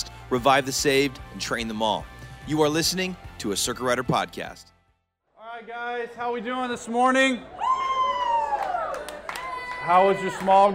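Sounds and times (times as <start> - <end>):
speech: 0.3 - 4.7, 5.6 - 7.6, 9.8 - 10.7
audience cheering and clapping: 7.4 - 10.7
high whoop sliding downward: 7.5 - 10.4.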